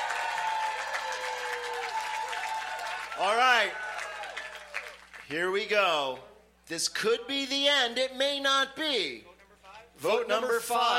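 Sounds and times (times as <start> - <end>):
audience applause: 0.0 - 5.3
speech: 3.2 - 3.8, 5.3 - 9.3, 10.0 - 10.9.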